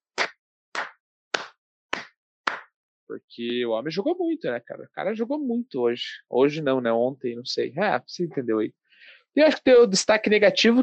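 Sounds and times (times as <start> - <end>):
hands clapping into headset microphone: 0.2 - 2.7
speech: 3.1 - 10.8.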